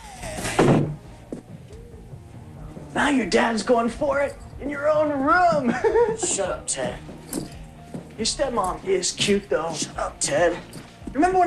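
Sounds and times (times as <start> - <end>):
rustling movement: 0.2 - 11.4
door pushed shut: 0.3 - 1.1
speech: 3.0 - 7.1, 8.2 - 11.4
laughter: 5.6 - 6.6.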